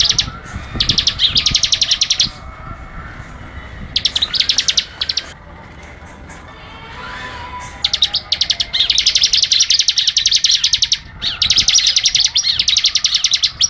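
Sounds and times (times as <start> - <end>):
bar-winged prinia singing rapid machine-gun trills: 0.0 - 2.5, 3.9 - 5.4, 7.6 - 13.6.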